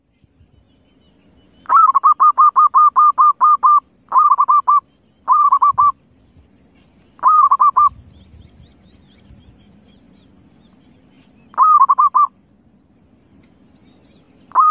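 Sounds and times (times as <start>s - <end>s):
zebra dove cooing: 1.6s - 6.0s, 7.2s - 8.0s, 11.5s - 12.4s, 14.5s - 14.6s.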